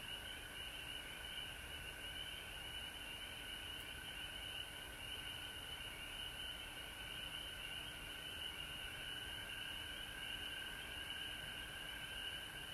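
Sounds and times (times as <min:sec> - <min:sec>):
frog chorus: 0:00.0 - 0:12.7.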